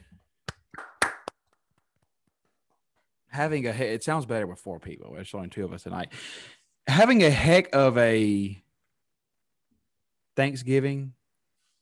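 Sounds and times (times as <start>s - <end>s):
small group clapping: 0.4s - 1.8s
speech: 3.4s - 8.6s, 10.4s - 11.2s.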